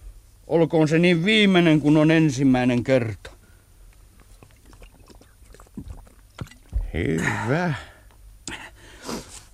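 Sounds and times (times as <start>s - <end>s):
speech: 0.5s - 3.3s, 6.9s - 7.9s
person drinking gulps from a bottle: 4.2s - 6.9s.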